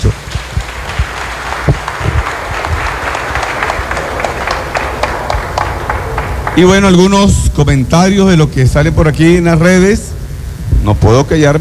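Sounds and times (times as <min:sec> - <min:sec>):
applause: 0:00.0 - 0:07.2
speech: 0:06.6 - 0:10.1, 0:10.8 - 0:11.5.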